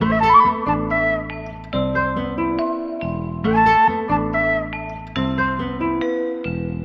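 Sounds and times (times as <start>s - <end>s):
flute: 0.0s - 5.9s
jazz hip hop music loops: 0.0s - 6.0s.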